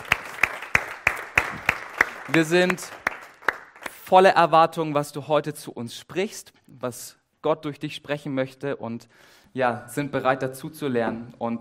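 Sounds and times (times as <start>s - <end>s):
audience applause welcoming speaker on stage: 0.0s - 4.0s
speech: 2.3s - 3.0s, 4.1s - 11.5s.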